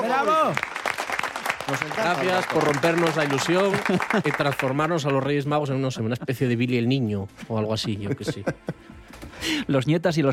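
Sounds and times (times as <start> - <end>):
small audience clapping: 0.0 - 5.6
speech: 0.1 - 0.7, 1.7 - 10.3
laughter: 3.2 - 5.0, 7.8 - 8.9.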